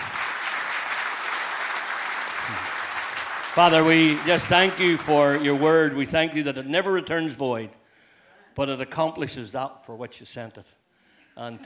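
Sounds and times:
church congregation applauding to welcome speakers: 0.0 - 6.5
speech: 3.6 - 7.8, 8.6 - 10.8, 11.4 - 11.6.

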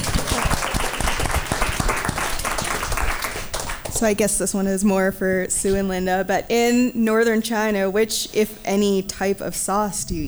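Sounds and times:
crowd applauding: 0.0 - 4.0
speech: 4.0 - 10.2.

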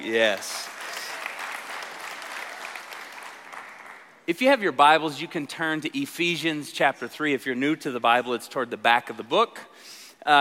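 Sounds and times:
speech: 0.0 - 0.7, 4.3 - 10.3
church congregation applauding a welcome back: 0.0 - 4.2.

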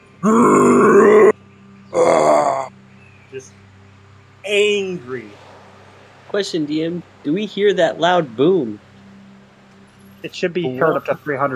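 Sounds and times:
speech: 0.2 - 0.5, 4.5 - 5.4, 6.3 - 8.8, 10.2 - 11.5
voice imitating a monster's roar: 0.2 - 1.4, 2.0 - 2.7.

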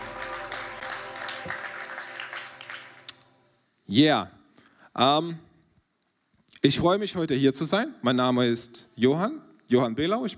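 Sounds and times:
audience applause for worship band: 0.0 - 3.1
speech: 3.9 - 4.4, 5.0 - 5.5, 6.6 - 10.3.

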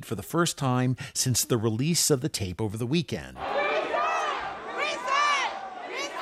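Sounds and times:
speech: 0.0 - 3.9
angry protest crowd in council chamber: 3.4 - 6.1.

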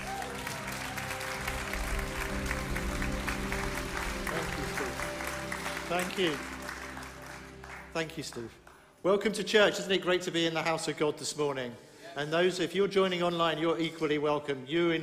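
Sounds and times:
church congregation applause welcoming a speaker: 0.0 - 9.4
speech: 5.9 - 6.5, 8.0 - 15.0.

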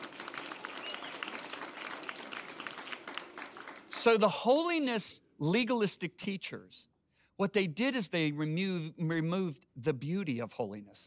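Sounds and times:
audience clapping: 0.0 - 4.5
speech: 4.0 - 11.0.

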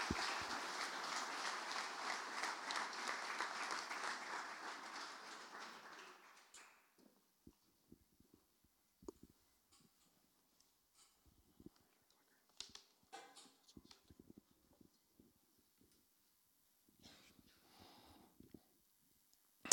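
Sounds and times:
audience applause: 0.0 - 6.8
scattered claps: 0.0 - 7.0.

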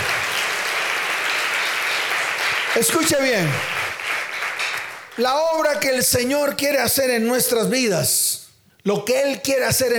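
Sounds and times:
audience applause: 0.0 - 5.3
speech: 2.8 - 3.8, 5.2 - 8.2, 8.8 - 9.9.

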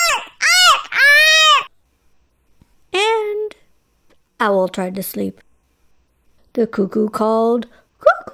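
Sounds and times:
voice imitating jays screaming: 0.0 - 1.7
speech: 4.4 - 5.5, 6.6 - 8.2.

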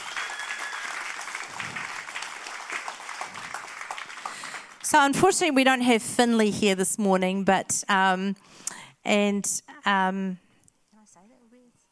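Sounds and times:
audience applause welcoming a family: 0.0 - 5.1
speech: 4.9 - 10.4.

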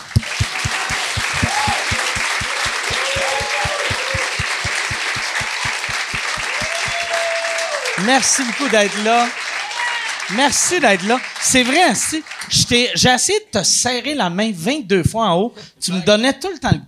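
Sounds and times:
audience applauding: 0.0 - 13.0
whoops and shouts: 1.1 - 4.6, 6.4 - 8.0, 9.6 - 10.2
speech: 8.0 - 9.4, 10.3 - 16.8.

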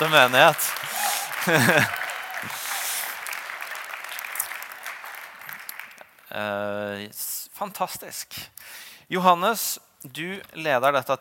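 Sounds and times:
speech: 0.0 - 2.6, 6.3 - 11.1
laughter: 0.0 - 3.1
soft gentle audience applause: 0.0 - 6.3.

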